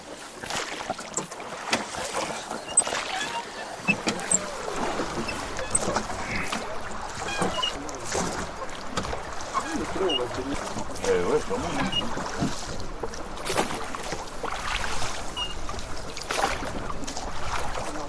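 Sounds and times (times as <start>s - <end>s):
Dordogne water washing along the gabare hull: 0.0s - 18.0s
oar strokes of a crew rowing the gabare river barge la Marie: 0.0s - 18.0s.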